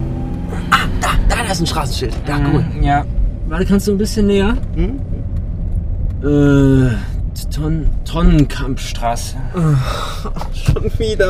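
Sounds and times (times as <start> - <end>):
car engine droning while driving around town: 0.0 - 11.2
speech: 1.0 - 5.1, 6.2 - 11.2.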